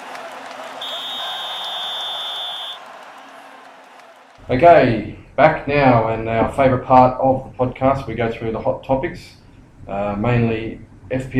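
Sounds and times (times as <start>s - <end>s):
high-pitched whistle blast marking a segment break: 0.8s - 2.8s
speech: 4.5s - 11.3s.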